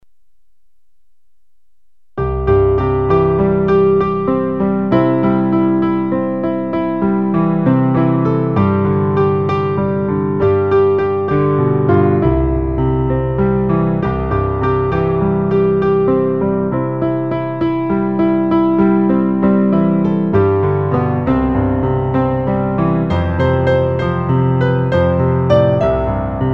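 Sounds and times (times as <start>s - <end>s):
piano: 2.2s - 26.5s.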